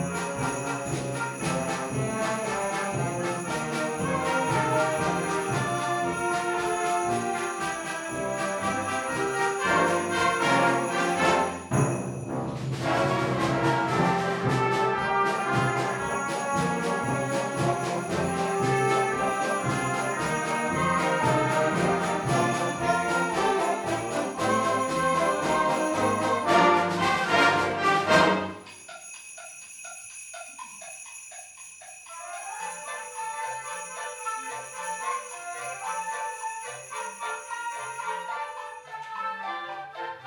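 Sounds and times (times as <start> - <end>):
bells ringing: 0.0 - 12.5, 14.6 - 38.9
band playing: 0.0 - 28.9.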